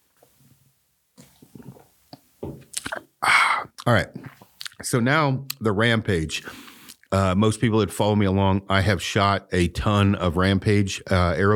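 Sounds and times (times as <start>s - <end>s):
person taking a drink of a beverage: 1.2s - 2.0s, 2.6s - 4.8s, 6.4s - 7.1s
speech: 3.9s - 4.2s, 4.8s - 11.5s.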